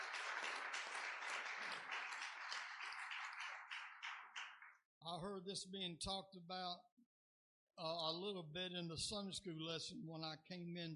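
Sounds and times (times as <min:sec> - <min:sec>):
audience hand clapping: 0:00.0 - 0:04.8
speech: 0:05.0 - 0:07.0, 0:07.8 - 0:10.9.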